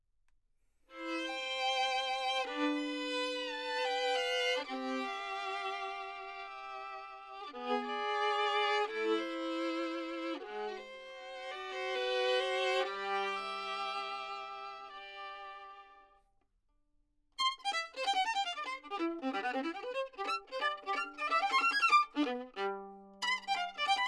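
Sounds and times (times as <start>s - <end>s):
violin: 0.9s - 16.2s, 17.4s - 24.0s.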